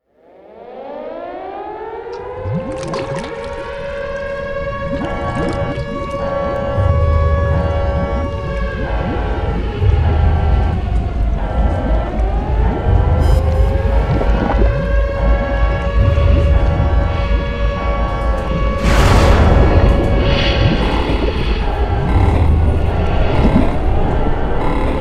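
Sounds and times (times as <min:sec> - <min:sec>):
ambient music: 0:00.2 - 0:25.0.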